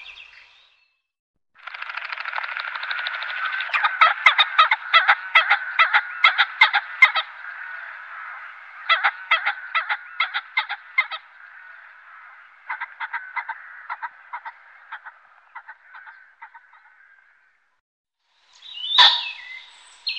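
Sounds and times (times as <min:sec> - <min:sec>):
Common pheasant calling with harsh notes: 0:02.7 - 0:17.6, 0:18.6 - 0:20.1.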